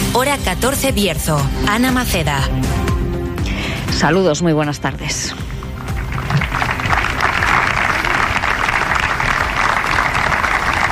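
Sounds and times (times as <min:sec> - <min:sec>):
speech: 0:00.1 - 0:02.9, 0:03.9 - 0:05.4
large crowd applause at a public gathering: 0:05.6 - 0:10.8.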